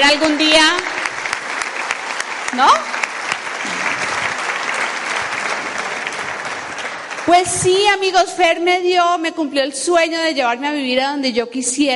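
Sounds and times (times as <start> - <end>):
speech: 0.0 - 0.6, 2.5 - 3.0, 7.3 - 11.9
audience applause: 0.0 - 8.2.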